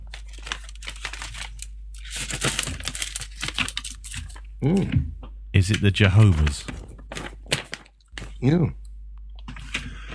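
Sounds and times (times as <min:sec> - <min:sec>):
white paper envelope being opened: 0:00.0 - 0:04.4, 0:05.6 - 0:08.4
speech: 0:04.6 - 0:06.8, 0:08.4 - 0:08.8.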